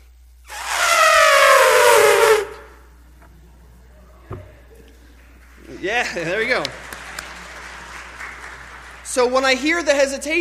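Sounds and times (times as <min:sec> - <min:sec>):
person imitating an elephant trumpeting: 0:00.5 - 0:02.8
speech: 0:05.8 - 0:06.8, 0:09.2 - 0:10.3.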